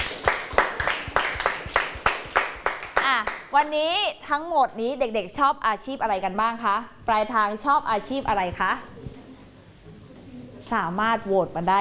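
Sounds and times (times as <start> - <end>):
hand clapping: 0.0 - 3.5
speech: 3.6 - 9.0, 10.7 - 11.7.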